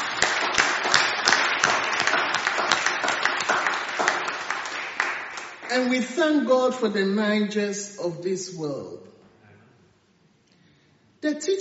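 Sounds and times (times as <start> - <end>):
audience clapping: 0.0 - 6.4
speech: 5.7 - 9.1, 11.2 - 11.5.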